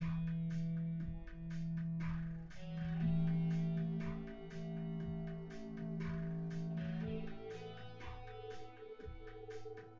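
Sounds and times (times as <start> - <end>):
synth drums: 0.0 - 9.9.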